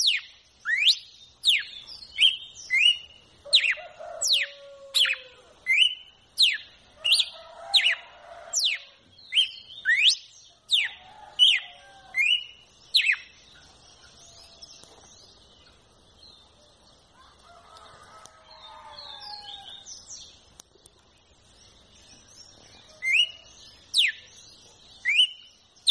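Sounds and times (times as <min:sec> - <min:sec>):
red-cowled cardinal song of clear whistles: 0:00.0 - 0:08.0, 0:08.6 - 0:13.4, 0:22.9 - 0:24.3, 0:25.0 - 0:25.9.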